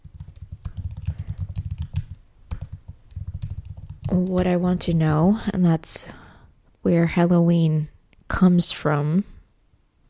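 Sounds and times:
typing on a computer keyboard: 0.0s - 4.9s
speech: 4.1s - 6.2s, 6.8s - 9.3s.

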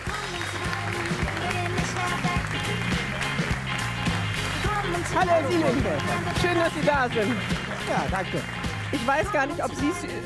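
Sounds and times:
studio audience applause: 0.0s - 9.5s
speech: 5.2s - 10.2s.

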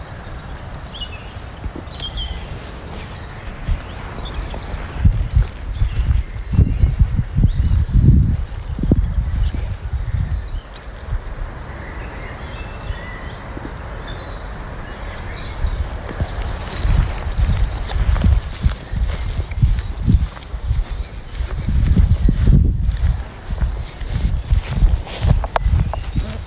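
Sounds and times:
birds chirping in the woods: 0.0s - 26.4s
footsteps crunching on a walk in the woods with a dog: 1.6s - 11.5s, 15.5s - 26.4s.

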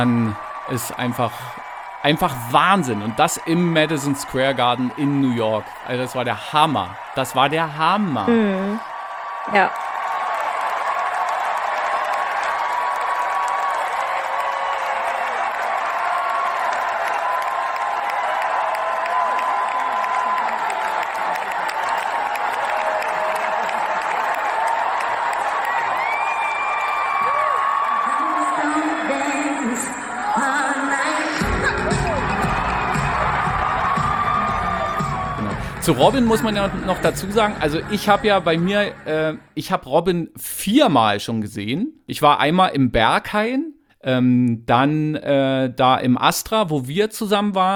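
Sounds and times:
speech: 0.0s - 8.9s, 9.5s - 9.8s, 35.9s - 47.7s
live concert crowd cheering: 0.0s - 39.6s.

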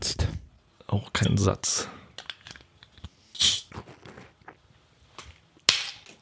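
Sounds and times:
speech: 0.9s - 2.0s
fizzy drink bottle opening hiss: 3.3s - 3.7s.

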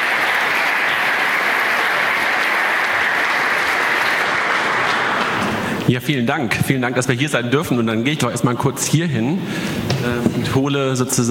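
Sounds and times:
audience applause: 0.0s - 5.9s
speech: 5.9s - 11.2s.

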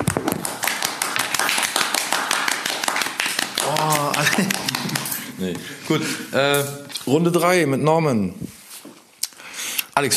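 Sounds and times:
applause: 0.0s - 5.3s
laughter: 3.6s - 6.3s
speech: 4.4s - 4.8s, 5.4s - 8.6s.

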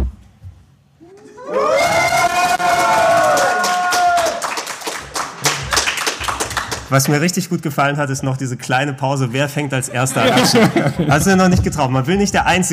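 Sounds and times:
small group cheering yay: 1.0s - 4.8s
people clapping: 1.6s - 7.2s
speech: 6.9s - 12.7s
laughter: 9.3s - 11.5s.

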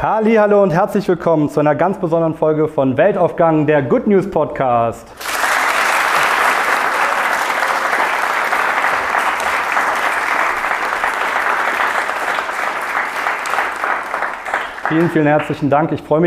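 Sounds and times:
speech: 0.2s - 5.2s, 14.9s - 16.2s
live theater audience applause: 5.2s - 15.7s.

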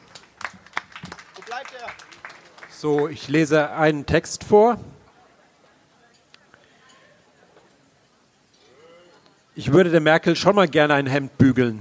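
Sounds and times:
audience applause: 0.0s - 3.5s
speech: 1.5s - 4.9s, 9.6s - 11.7s.

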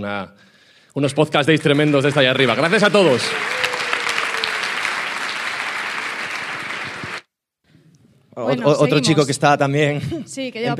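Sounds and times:
speech: 0.0s - 3.6s, 8.4s - 10.7s
audience applause: 1.4s - 7.3s.

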